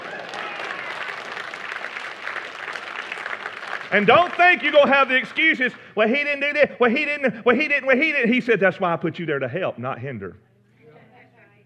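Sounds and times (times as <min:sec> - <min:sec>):
audience hand clapping: 0:00.0 - 0:05.4
speech: 0:03.9 - 0:10.4.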